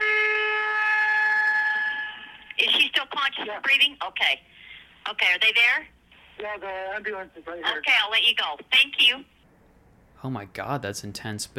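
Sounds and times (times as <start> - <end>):
car horn honking: 0.0 - 2.3
speech: 3.3 - 9.3, 10.2 - 11.5.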